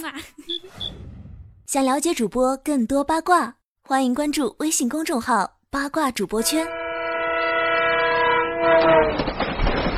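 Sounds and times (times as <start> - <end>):
speech: 0.0 - 1.0, 1.7 - 6.8
train horn: 6.4 - 9.2.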